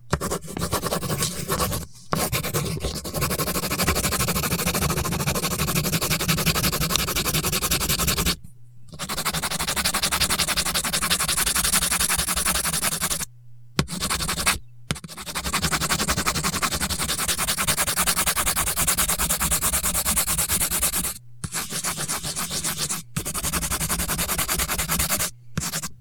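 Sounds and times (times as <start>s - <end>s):
pen colouring: 0.1s - 13.2s, 13.9s - 25.9s.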